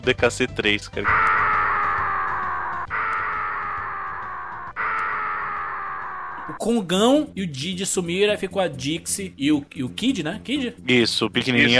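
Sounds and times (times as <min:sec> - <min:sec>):
speech: 0:00.0 - 0:01.2, 0:06.6 - 0:11.7
video game baby character crying sound effect: 0:01.0 - 0:06.6.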